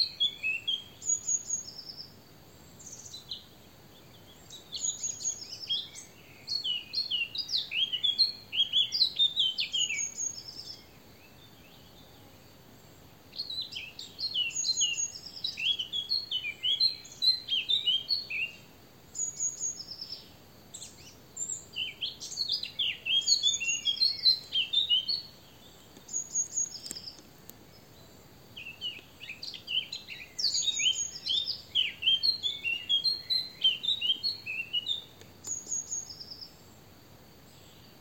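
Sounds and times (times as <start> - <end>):
Eurasian blackcap warbling song: 4.1 - 10.9, 13.3 - 36.6.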